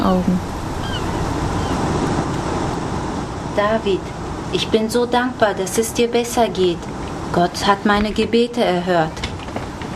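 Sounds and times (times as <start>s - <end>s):
gentle waves rocking a boat with a cabin: 0.0s - 9.9s
speech: 3.6s - 9.2s.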